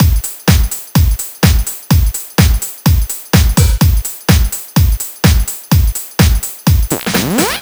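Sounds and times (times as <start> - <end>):
nu dance electro drum loop: 0.0 - 7.5.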